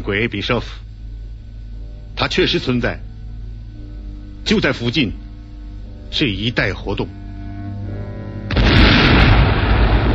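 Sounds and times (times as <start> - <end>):
speech: 0.0 - 0.9, 2.2 - 3.1, 4.5 - 5.2, 6.1 - 7.2
railway viaduct being blown up: 8.5 - 10.1.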